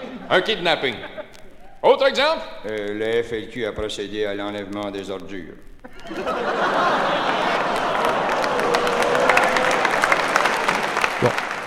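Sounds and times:
laughter: 0:00.0 - 0:01.8, 0:05.8 - 0:11.6
speech: 0:00.3 - 0:01.1, 0:01.8 - 0:07.2, 0:11.2 - 0:11.4
audience applause in a recorded comedy sketch: 0:06.0 - 0:11.6.

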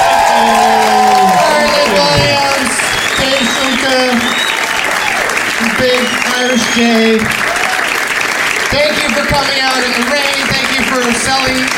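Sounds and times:
cheers and whoops: 0:00.0 - 0:08.1
crowd clapping: 0:00.0 - 0:11.7
speech: 0:06.8 - 0:07.4, 0:08.7 - 0:11.7.

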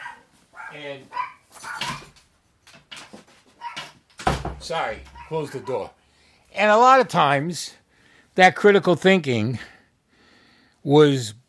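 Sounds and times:
speech: 0:00.7 - 0:01.7, 0:04.6 - 0:06.0, 0:06.6 - 0:07.8, 0:08.4 - 0:09.7, 0:10.8 - 0:11.4
dogs whimpering: 0:05.1 - 0:05.8.

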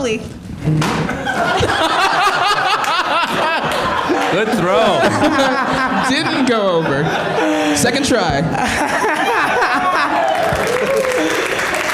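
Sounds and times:
speech: 0:00.0 - 0:02.1, 0:04.3 - 0:09.1
laughter: 0:01.1 - 0:11.9
audience clapping at a live event: 0:02.6 - 0:04.8, 0:09.5 - 0:11.9.

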